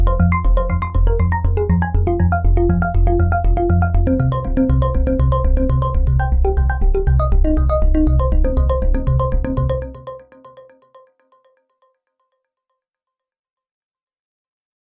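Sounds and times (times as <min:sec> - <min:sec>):
Waldorf Quantum synthesizer: 0:00.0 - 0:11.5.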